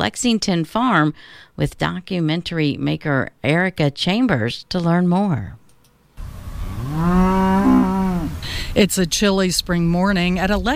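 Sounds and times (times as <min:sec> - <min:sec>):
speech: 0:00.0 - 0:05.6, 0:08.7 - 0:10.7
cow Marigold mooing in a pasture at a Lexington dairy farm: 0:06.5 - 0:08.4.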